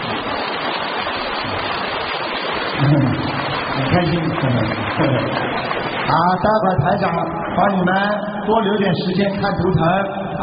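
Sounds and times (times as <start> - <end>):
crowd applauding: 0.0 - 8.1
speech: 2.8 - 10.4.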